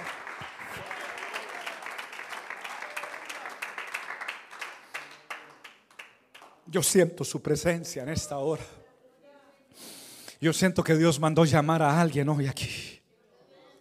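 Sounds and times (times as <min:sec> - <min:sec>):
audience applause: 0:00.0 - 0:06.5
speech: 0:06.7 - 0:08.8, 0:10.4 - 0:12.9.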